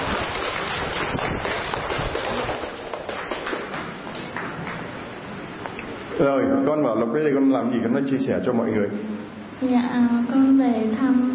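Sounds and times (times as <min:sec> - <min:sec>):
audience applause: 0:00.0 - 0:05.1
speech: 0:06.2 - 0:11.3.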